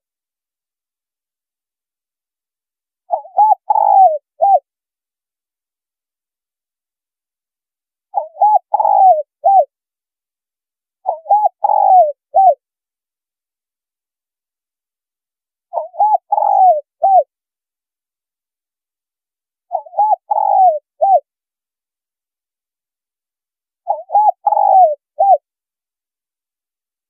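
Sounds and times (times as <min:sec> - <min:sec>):
spotted dove cooing: 0:03.1 - 0:04.6, 0:08.1 - 0:09.7, 0:11.0 - 0:12.6, 0:15.7 - 0:17.3, 0:19.7 - 0:21.2, 0:23.9 - 0:25.4.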